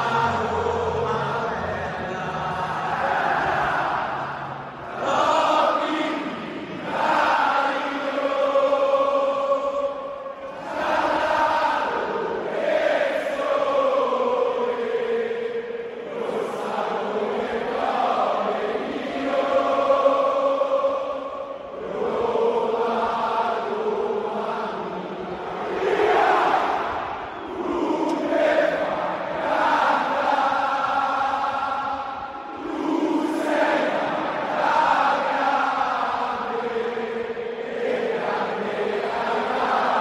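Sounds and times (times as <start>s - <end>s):
stadium crowd singing a hymn: 0.0s - 39.9s.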